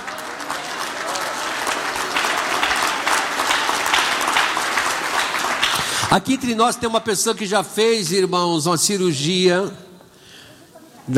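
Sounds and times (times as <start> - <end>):
audience applause: 0.0 - 6.6
speech: 6.1 - 9.9.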